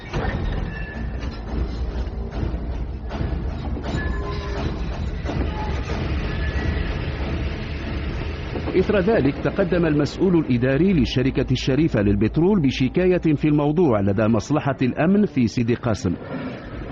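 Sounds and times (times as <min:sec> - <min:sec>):
train moving along rails: 0:01.0 - 0:11.2
speech: 0:08.8 - 0:16.6.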